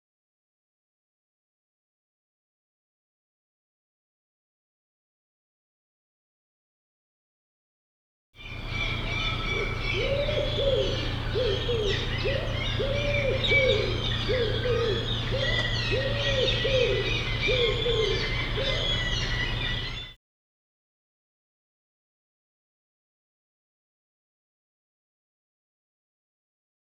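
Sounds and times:
low hooting arched bird calls: 0:08.4 - 0:20.2.

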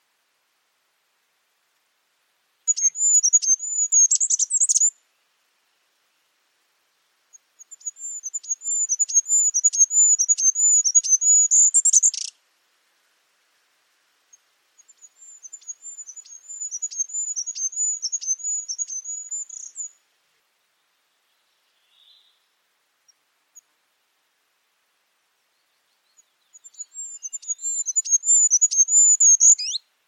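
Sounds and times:
high sharp bird chirps and thin whistles: 0:02.7 - 0:04.9, 0:07.7 - 0:12.3, 0:15.0 - 0:19.9, 0:26.6 - 0:29.8.

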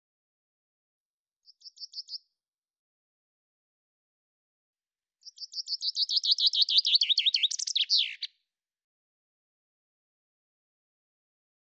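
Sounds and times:
Common chaffinch singing: 0:01.4 - 0:02.3, 0:05.2 - 0:08.3.

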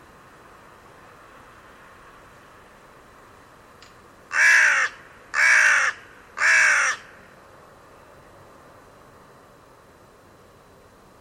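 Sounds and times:
bird giving raspy caws: 0:04.3 - 0:07.3.

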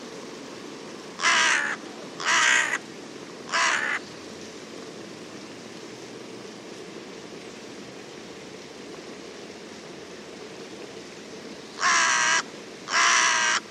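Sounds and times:
bird cawing: 0:01.2 - 0:02.8, 0:03.5 - 0:04.0, 0:11.8 - 0:13.7.

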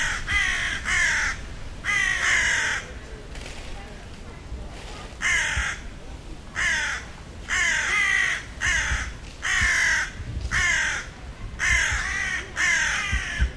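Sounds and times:
bird raspy caw-like calls: 0:00.0 - 0:03.0, 0:06.5 - 0:13.5.

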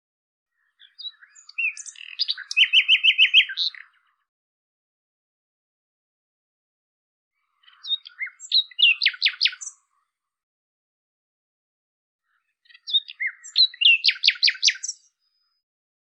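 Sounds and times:
common nightingale singing: 0:00.5 - 0:04.2, 0:07.4 - 0:10.0, 0:12.2 - 0:15.6.

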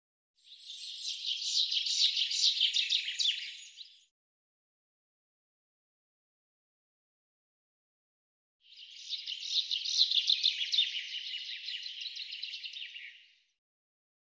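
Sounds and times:
bird chirping song: 0:00.4 - 0:04.1, 0:08.6 - 0:13.6.

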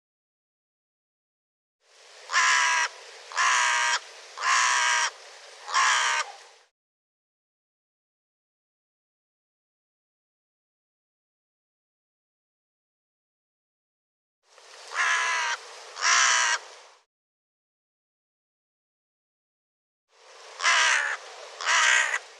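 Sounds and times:
harsh bird caws: 0:02.3 - 0:06.4, 0:14.9 - 0:16.7, 0:20.6 - 0:22.3.

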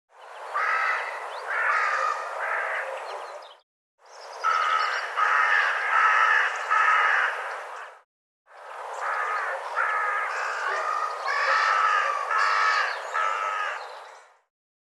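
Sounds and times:
bird giving harsh nasal cawing calls: 0:00.5 - 0:03.1, 0:04.4 - 0:07.9, 0:09.0 - 0:14.4.

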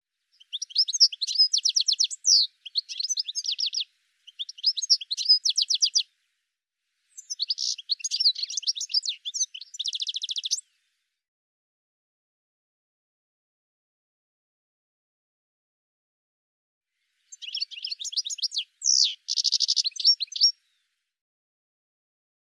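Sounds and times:
high sharp bird chirps: 0:00.4 - 0:06.0, 0:07.2 - 0:10.6, 0:17.3 - 0:20.6.

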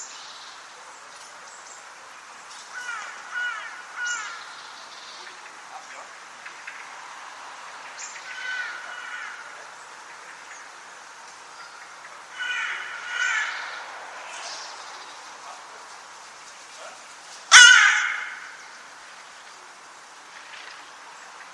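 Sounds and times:
bird giving harsh raspy caws: 0:02.7 - 0:04.7, 0:07.9 - 0:10.6, 0:11.6 - 0:14.7, 0:17.5 - 0:19.0.

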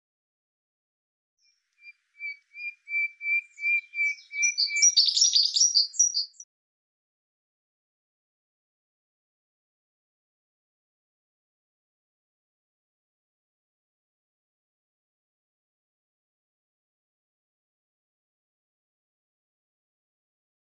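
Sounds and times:
bird singing buzzy chirps: 0:01.4 - 0:06.4.

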